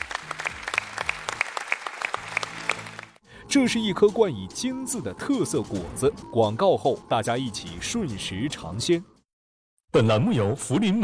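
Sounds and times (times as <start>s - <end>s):
studio audience applause: 0.0s - 3.2s
speech: 3.5s - 9.1s, 9.9s - 11.0s.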